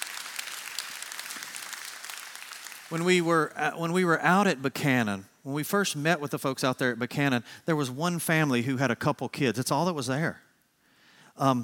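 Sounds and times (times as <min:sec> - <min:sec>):
few people clapping: 0:00.0 - 0:03.6
speech: 0:02.9 - 0:10.4, 0:11.4 - 0:11.6.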